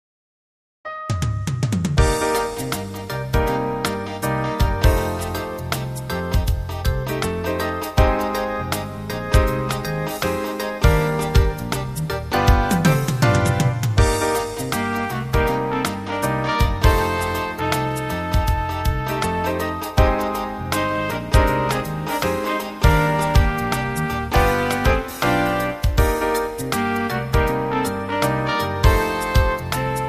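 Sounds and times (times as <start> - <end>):
reggae euphonium: 0.9 - 30.0.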